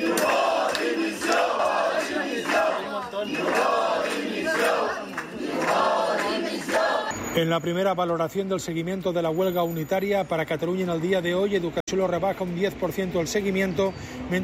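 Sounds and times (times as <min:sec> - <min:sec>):
protesting teachers shouting and chanting inside building: 0:00.0 - 0:07.1
speech: 0:07.4 - 0:14.4.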